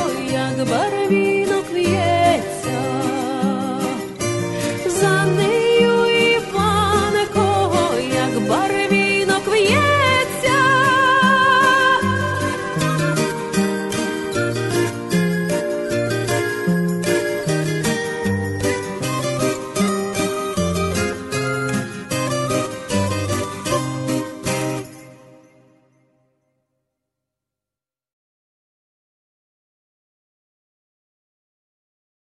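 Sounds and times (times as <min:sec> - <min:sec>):
Ukrainian folk songs: 0:00.0 - 0:25.3.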